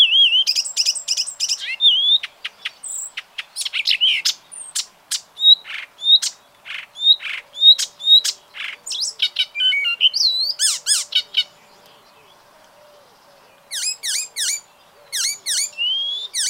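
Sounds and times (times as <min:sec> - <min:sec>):
bird calling: 0:00.0 - 0:16.4.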